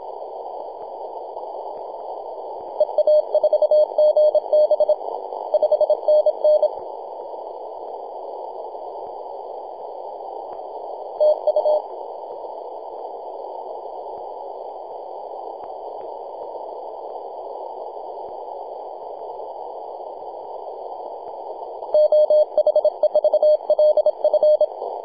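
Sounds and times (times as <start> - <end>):
morse code tones on 28.008 MHz: 2.8 - 5.0, 5.6 - 6.7, 11.2 - 11.8, 22.0 - 24.7.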